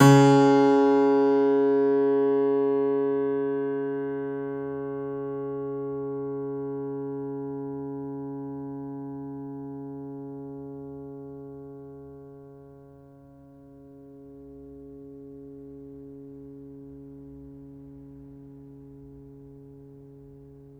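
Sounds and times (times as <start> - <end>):
string pluck: 0.0 - 4.2
piano: 0.0 - 5.3.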